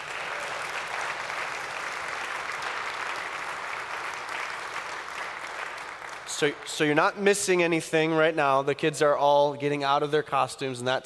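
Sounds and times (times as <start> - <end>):
audience applause: 0.0 - 7.2
speech: 6.4 - 11.0.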